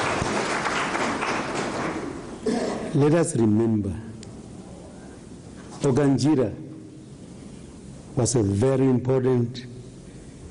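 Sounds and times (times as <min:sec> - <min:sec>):
audience applause at an event announcing new regional sports facilities: 0:00.0 - 0:02.4
speech: 0:02.9 - 0:04.1, 0:05.8 - 0:06.6, 0:08.2 - 0:09.7.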